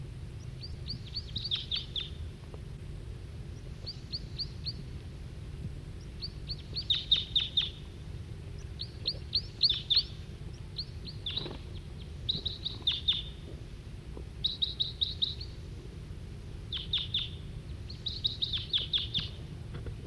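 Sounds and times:
steady low hum of noise: 0:00.0 - 0:20.0
male wild bird singing in high bright chirping notes: 0:00.3 - 0:02.3, 0:03.5 - 0:04.9, 0:05.9 - 0:13.6, 0:14.4 - 0:15.7, 0:16.4 - 0:19.5.

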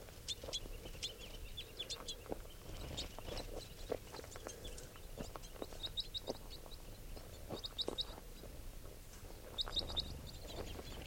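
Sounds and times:
small flock of crossbills calling: 0:00.0 - 0:11.0.

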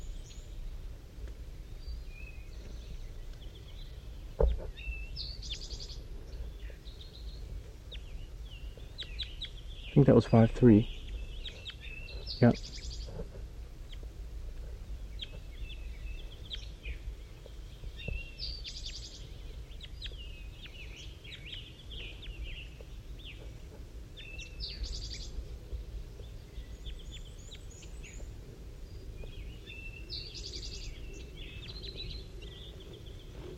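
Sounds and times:
birds calling with high chirps and buzzy notes: 0:00.0 - 0:33.5
low rumble: 0:00.0 - 0:33.5
speech: 0:10.0 - 0:11.0, 0:12.4 - 0:12.7.

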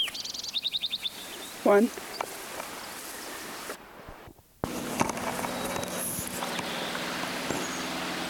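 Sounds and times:
sparrow singing from a pine: 0:00.0 - 0:03.4, 0:05.2 - 0:08.2
speech: 0:01.6 - 0:02.1.

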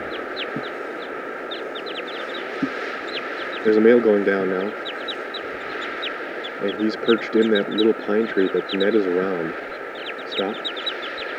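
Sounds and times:
hiss: 0:00.0 - 0:11.3
wild flock of birds chirping in a dead tree: 0:00.0 - 0:11.3
speech: 0:03.6 - 0:04.8, 0:06.6 - 0:09.7, 0:10.4 - 0:10.7.

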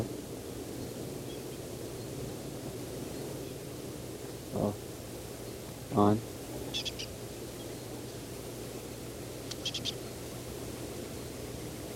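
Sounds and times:
steady hiss and low hum: 0:00.0 - 0:11.9
speech: 0:04.6 - 0:04.9, 0:05.9 - 0:06.3
small bird chirping: 0:06.7 - 0:08.2, 0:09.4 - 0:10.2.

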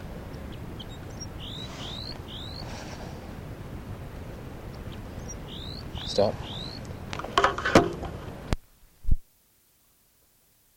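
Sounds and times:
steady low rumbling noise: 0:00.0 - 0:09.1
female crossbill giving alarm calls: 0:00.4 - 0:02.7, 0:04.7 - 0:07.1
speech: 0:06.1 - 0:06.6.

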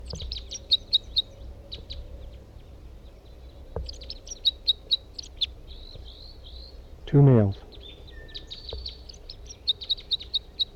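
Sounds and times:
bird singing: 0:00.0 - 0:10.7
speech: 0:07.1 - 0:07.6.

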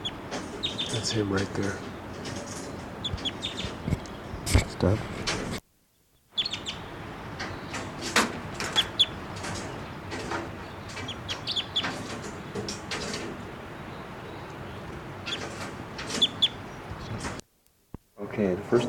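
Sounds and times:
bird calling: 0:00.0 - 0:17.4
speech: 0:00.9 - 0:01.9, 0:04.8 - 0:05.2.

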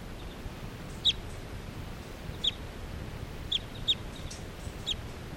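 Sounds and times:
wild bird calling: 0:00.0 - 0:01.5, 0:02.1 - 0:02.8, 0:03.4 - 0:05.2.

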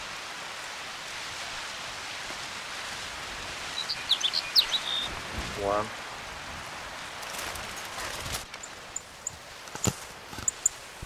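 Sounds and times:
steady hiss: 0:00.0 - 0:11.0
sparrow song, high quick chirps and trills: 0:03.8 - 0:05.1, 0:10.4 - 0:10.8
speech: 0:05.6 - 0:06.0.

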